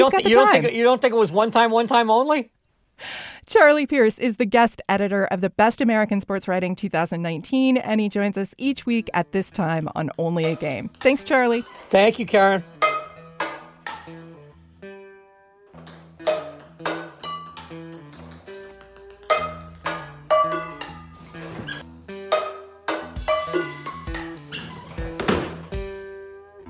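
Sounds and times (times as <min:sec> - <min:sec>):
speech: 0:00.0 - 0:12.8
ping pong balls bouncing off pots and pans: 0:09.6 - 0:14.3, 0:15.7 - 0:26.0.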